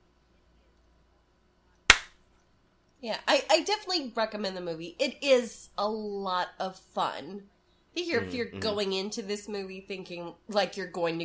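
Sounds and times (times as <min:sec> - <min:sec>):
hand clap: 0:01.9 - 0:02.1
speech: 0:03.0 - 0:11.2.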